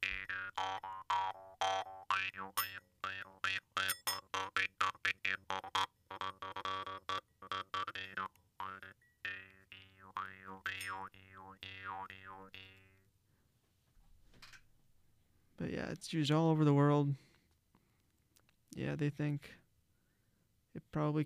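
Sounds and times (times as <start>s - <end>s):
Jew's harp played with tongue pushed forward and backward: 0.0s - 13.0s
speech: 0.4s - 12.8s, 15.6s - 17.3s, 18.7s - 19.6s, 20.8s - 21.2s.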